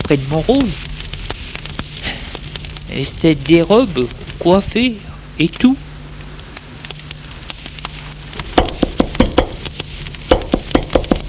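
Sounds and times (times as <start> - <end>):
speech: 0.1 - 0.9, 2.9 - 5.9
knocking on a door: 8.6 - 9.6, 10.3 - 11.2.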